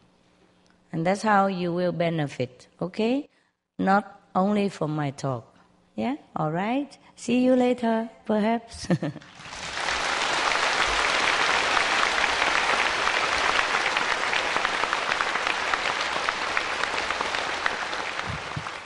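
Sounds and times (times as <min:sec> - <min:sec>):
speech: 0:01.0 - 0:09.6
audience clapping: 0:09.2 - 0:18.8.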